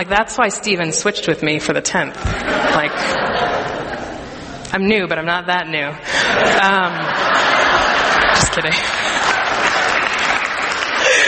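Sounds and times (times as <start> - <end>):
speech: 0.0 - 3.7, 4.7 - 7.5, 8.5 - 9.2
laughter: 2.1 - 4.7, 6.1 - 11.2
audience clapping: 7.4 - 11.2.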